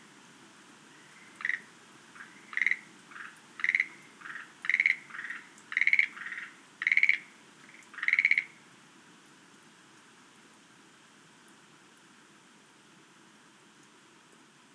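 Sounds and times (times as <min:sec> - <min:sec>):
Schlegel's green tree frog rattling calls: 0:00.9 - 0:08.6.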